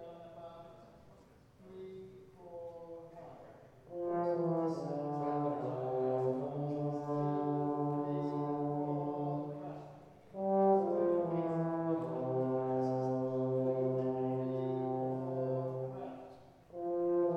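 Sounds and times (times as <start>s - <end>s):
brass instruments: 3.7s - 17.3s.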